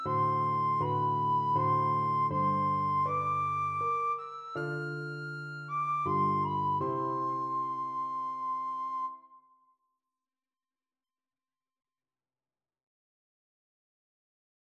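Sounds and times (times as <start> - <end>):
recorder playing a nocturne: 0.0 - 9.3.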